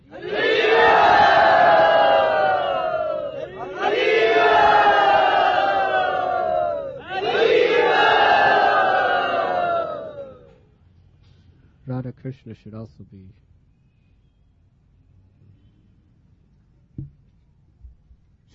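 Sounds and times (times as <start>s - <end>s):
crowd at a devotional gathering chanting in welcome: 0.0s - 10.5s
speech: 12.3s - 13.5s.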